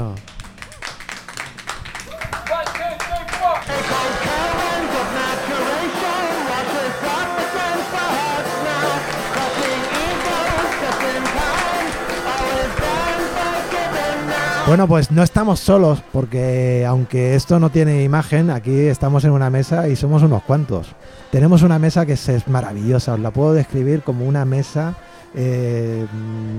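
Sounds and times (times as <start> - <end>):
audience applause: 0.0 - 14.8
speech: 14.7 - 26.5.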